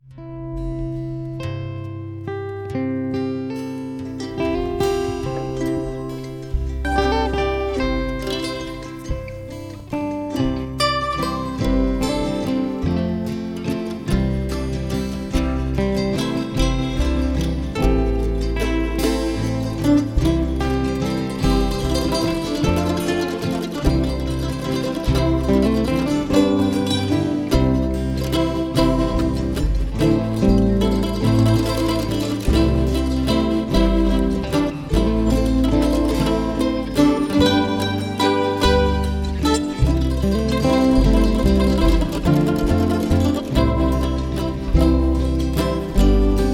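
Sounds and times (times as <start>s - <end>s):
instrumental music: 0.0s - 46.5s.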